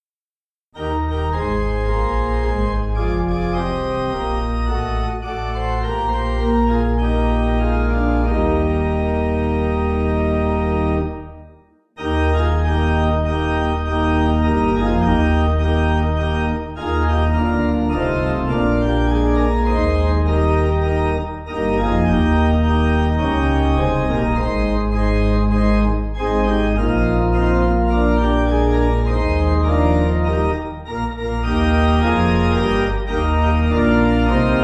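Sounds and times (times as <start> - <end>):
pipe organ playing a hymn: 0.8 - 34.6.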